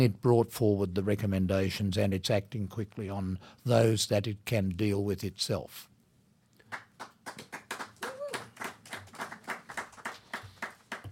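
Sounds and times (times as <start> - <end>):
speech: 0.0 - 5.9
applause from a small group: 6.7 - 11.1
person cheering: 8.0 - 8.7.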